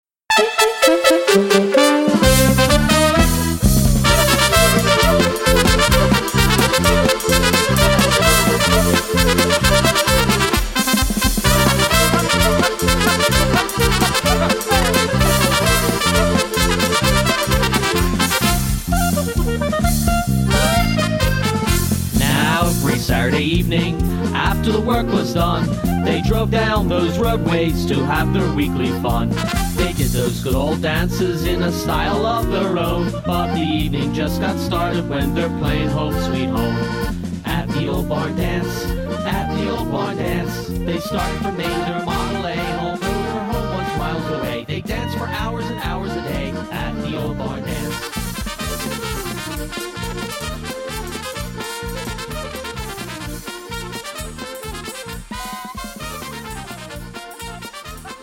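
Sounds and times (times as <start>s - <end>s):
barn dance music: 0.3s - 58.2s.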